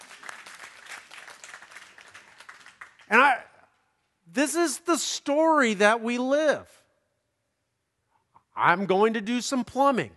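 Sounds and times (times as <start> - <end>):
audience applause: 0.0 - 3.2
speech: 3.1 - 3.4, 4.3 - 6.8, 8.6 - 10.1.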